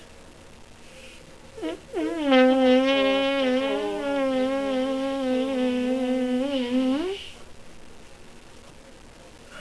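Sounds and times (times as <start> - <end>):
fart: 1.5 - 7.3.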